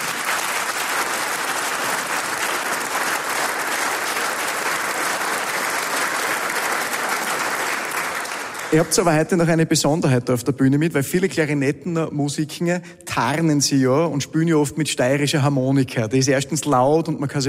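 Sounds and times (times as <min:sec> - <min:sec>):
audience applause: 0:00.0 - 0:09.4
speech: 0:08.7 - 0:17.4.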